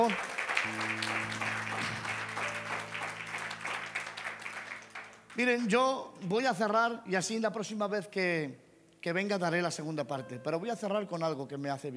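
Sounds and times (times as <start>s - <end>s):
speech: 0.0s - 1.4s, 5.4s - 11.9s
audience applause: 0.0s - 5.4s.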